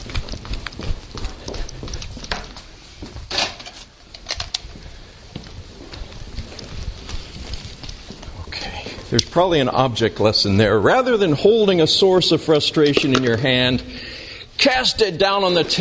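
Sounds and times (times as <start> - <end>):
footsteps of a man running to another room to fetch pens: 0.0 - 9.9
low noise: 0.0 - 15.7
speech: 9.2 - 15.7.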